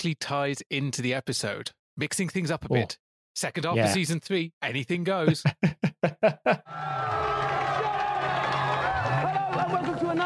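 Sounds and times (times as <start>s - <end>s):
speech: 0.0s - 8.0s
laughter: 5.3s - 6.7s, 8.6s - 10.2s
raucous crowd cheering at the opening of a TV game show heat: 6.6s - 10.2s.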